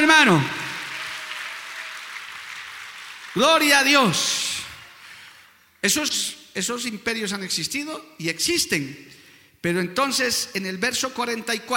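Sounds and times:
speech: 0.0 - 0.6, 3.4 - 4.4, 5.8 - 11.7
audience applause: 0.0 - 5.4.

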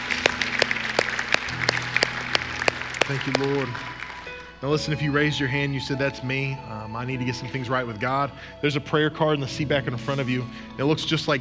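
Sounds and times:
audience applause: 0.0 - 5.0
speech: 3.1 - 3.9, 4.6 - 11.3.

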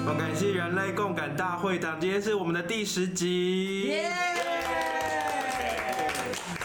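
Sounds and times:
speech: 0.1 - 4.8
audience clapping: 3.7 - 6.6.

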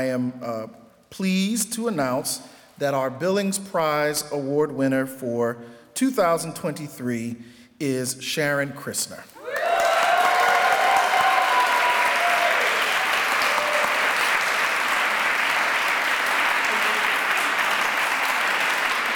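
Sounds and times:
speech: 0.0 - 9.4
audience applause: 9.4 - 19.1.

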